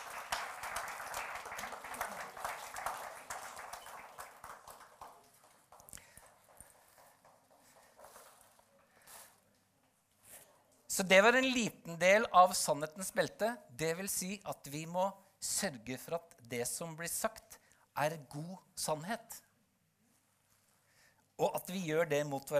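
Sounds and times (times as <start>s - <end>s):
audience applause: 0.0s - 8.0s
speech: 11.0s - 19.5s, 21.4s - 22.5s.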